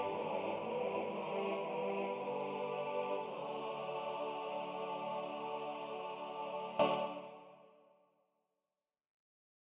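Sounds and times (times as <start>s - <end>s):
SATB choir singing: 0.0s - 7.6s.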